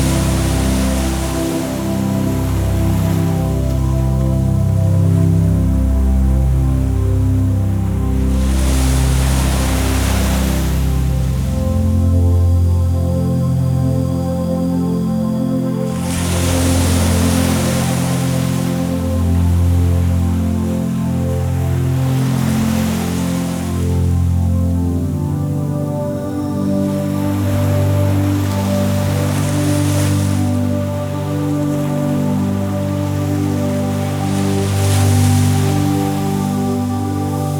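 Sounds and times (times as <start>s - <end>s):
healing relaxation music: 0.0s - 37.5s
ocean waves: 0.0s - 37.5s.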